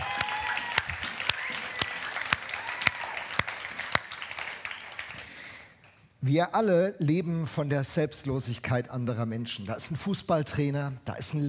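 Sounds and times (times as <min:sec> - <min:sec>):
audience applause: 0:00.0 - 0:05.6
speech: 0:06.2 - 0:11.4.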